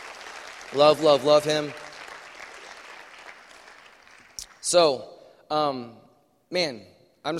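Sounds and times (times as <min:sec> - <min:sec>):
crowd applauding: 0:00.0 - 0:04.8
speech: 0:00.7 - 0:01.8, 0:04.7 - 0:07.3.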